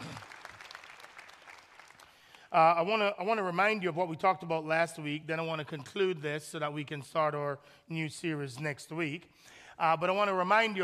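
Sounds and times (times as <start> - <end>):
church congregation applause: 0.0 - 3.0
speech: 2.5 - 10.8.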